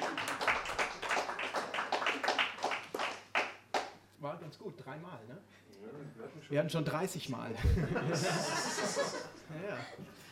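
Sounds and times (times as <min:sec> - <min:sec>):
audience applause: 0:00.0 - 0:03.5
speech: 0:04.5 - 0:10.3
laughter: 0:07.6 - 0:10.2.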